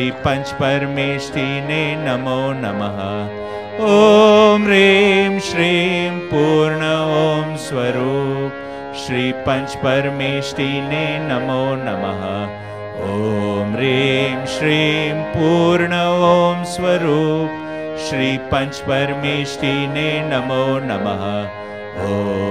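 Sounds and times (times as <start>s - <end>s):
devotional bhakti chant: 0.0s - 22.4s.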